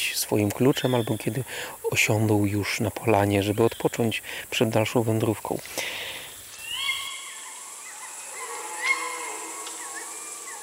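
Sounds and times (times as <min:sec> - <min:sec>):
speech: 0:00.3 - 0:06.2
tawny owls calling during mating season: 0:06.2 - 0:10.6.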